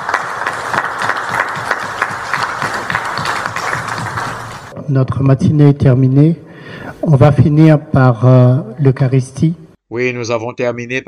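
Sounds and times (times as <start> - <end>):
audience applause: 0.0 - 4.7
speech: 4.9 - 6.4, 7.0 - 11.0.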